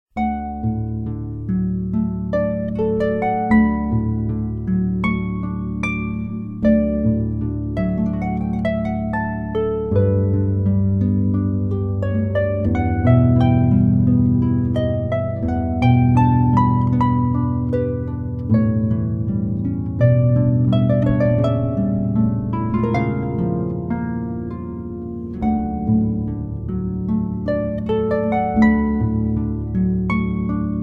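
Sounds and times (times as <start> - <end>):
music piece: 0.1 - 30.8.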